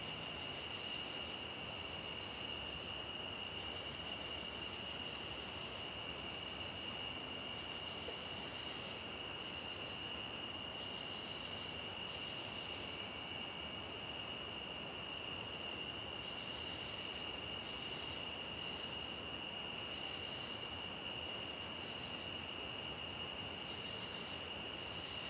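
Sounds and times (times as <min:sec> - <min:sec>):
cricket chorus near a stream: 0:00.0 - 0:25.2.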